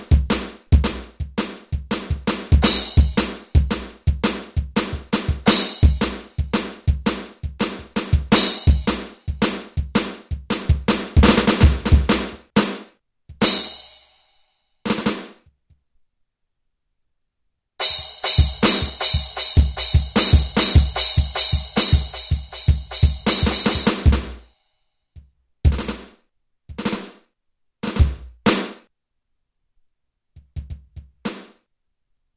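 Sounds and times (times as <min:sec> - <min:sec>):
electric drums: 0:00.0 - 0:14.3, 0:14.9 - 0:15.4, 0:17.8 - 0:24.5, 0:25.2 - 0:27.2, 0:27.8 - 0:28.8, 0:30.4 - 0:31.6.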